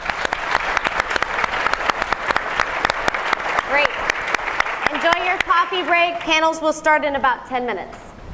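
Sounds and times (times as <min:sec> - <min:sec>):
round of applause: 0:00.0 - 0:06.3
speech: 0:05.8 - 0:08.0.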